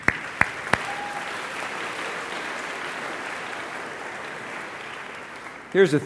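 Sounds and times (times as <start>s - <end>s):
sharp claps: 0.0s - 6.0s
speech: 5.7s - 6.0s.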